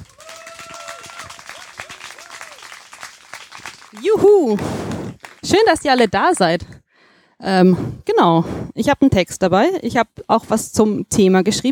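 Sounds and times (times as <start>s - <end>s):
cheers and whoops: 0.0s - 2.9s
audience applause for a poetry slammer: 0.0s - 6.5s
speech: 3.9s - 4.9s, 5.5s - 6.7s, 7.4s - 11.7s.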